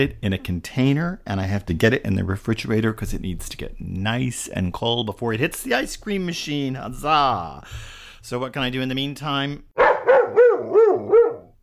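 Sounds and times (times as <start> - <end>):
speech: 0.0 - 9.8
dog barking: 9.8 - 11.6.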